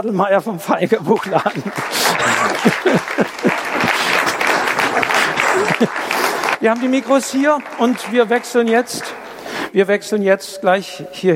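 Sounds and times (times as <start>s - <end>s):
speech: 0.0s - 4.2s, 5.0s - 11.3s
laughter: 0.7s - 9.4s
roaring audience applause: 1.1s - 9.7s.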